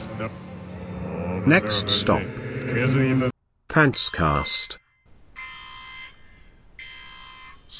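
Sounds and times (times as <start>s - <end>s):
speech: 0.3s - 0.5s, 1.5s - 4.9s
siren alarm: 5.1s - 7.7s.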